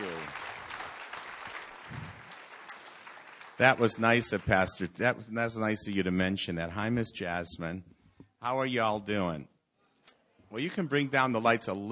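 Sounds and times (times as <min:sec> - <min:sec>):
audience applause welcoming a speaker to the stage: 0:00.0 - 0:04.8
speech: 0:03.6 - 0:09.5, 0:10.5 - 0:11.9.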